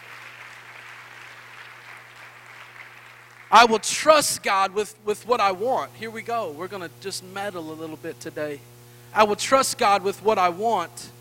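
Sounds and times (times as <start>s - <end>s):
audience clapping hands: 0.0s - 4.2s
speech: 3.5s - 11.2s.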